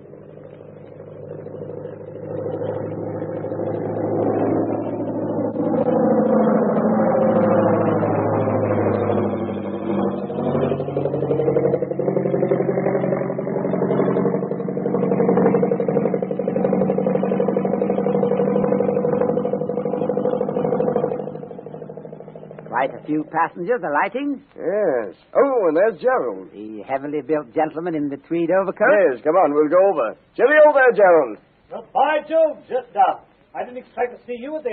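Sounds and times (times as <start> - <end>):
airplane engines droning as aircraft arrives at airport: 0.0 - 24.1
speech: 23.1 - 34.7.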